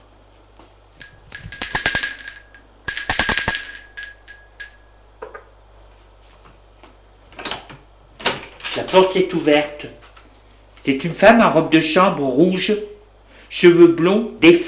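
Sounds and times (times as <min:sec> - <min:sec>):
doorbell ringing: 0:01.0 - 0:05.0
speech: 0:08.9 - 0:10.0, 0:10.8 - 0:12.9, 0:13.5 - 0:14.6.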